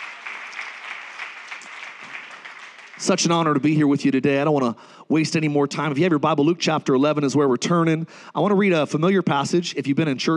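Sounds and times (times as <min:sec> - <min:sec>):
audience applauding: 0:00.0 - 0:03.8
speech: 0:03.0 - 0:10.3.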